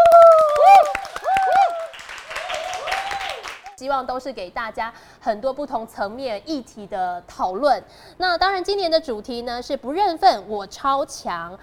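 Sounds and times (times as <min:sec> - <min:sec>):
applause: 0:00.0 - 0:03.8
speech: 0:03.8 - 0:11.6.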